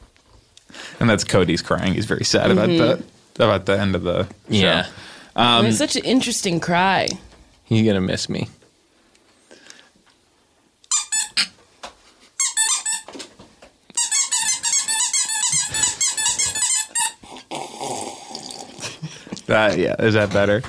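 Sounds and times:
speech: 0:01.0 - 0:08.6, 0:19.7 - 0:20.6
nose blowing: 0:15.4 - 0:19.1.

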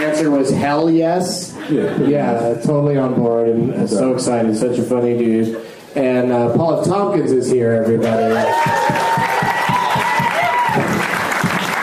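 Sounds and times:
speech: 0:00.0 - 0:09.3
clapping: 0:08.4 - 0:11.8.

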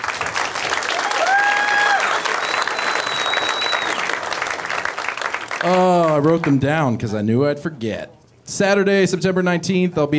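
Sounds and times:
audience applauding a comedian at a stand-up show: 0:00.0 - 0:06.8
sharp whistles: 0:02.1 - 0:04.2
speech: 0:05.6 - 0:10.1.

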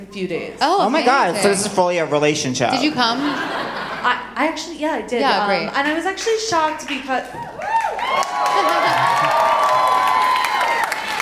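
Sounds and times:
speech: 0:00.0 - 0:07.5
laughter: 0:02.8 - 0:04.3, 0:08.5 - 0:09.8
scattered clapping: 0:06.8 - 0:11.2
crowd cheering with shouts and whoops: 0:07.2 - 0:11.2.

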